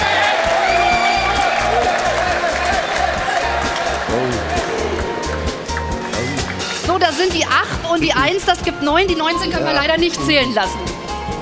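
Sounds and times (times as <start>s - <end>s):
people shouting and whooping: 0.0s - 5.2s
crowd cheering and applauding: 0.0s - 6.9s
speech: 7.2s - 11.0s.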